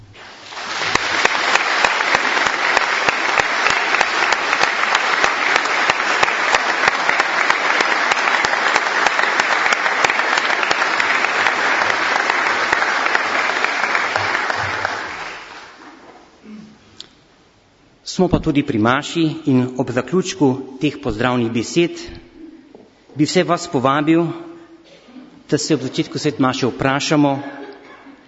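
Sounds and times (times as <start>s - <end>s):
audience applause: 0.0s - 16.0s
speech: 18.2s - 22.2s, 23.2s - 24.4s, 25.5s - 27.6s.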